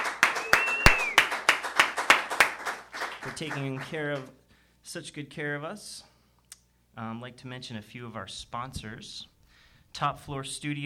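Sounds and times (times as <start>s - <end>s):
audience applause at a downtown art gallery event: 0.0s - 4.0s
speech: 3.2s - 6.1s, 7.0s - 9.3s, 9.9s - 10.8s.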